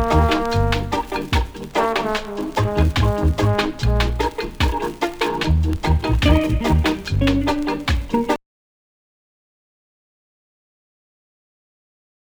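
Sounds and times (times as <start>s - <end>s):
reggae music: 0.0s - 8.4s.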